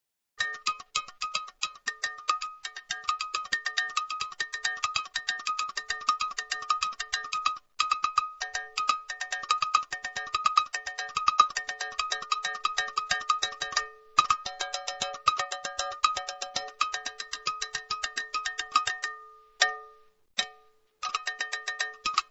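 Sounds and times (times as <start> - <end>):
agogo bells: 0.4 - 22.3.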